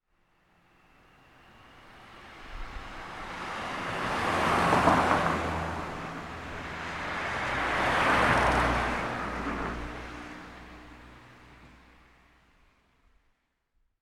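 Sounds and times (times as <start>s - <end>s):
car approaching: 3.0s - 12.6s.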